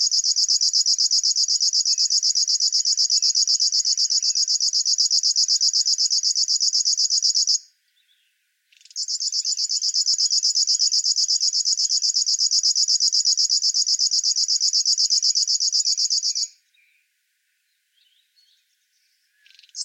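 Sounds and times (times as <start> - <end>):
river warbler Locustella fluviatilis singing: 0.0 - 17.1, 18.0 - 19.8.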